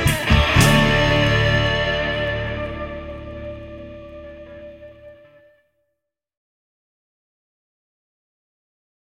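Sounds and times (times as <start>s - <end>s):
long guitar hymn: 0.1s - 5.3s.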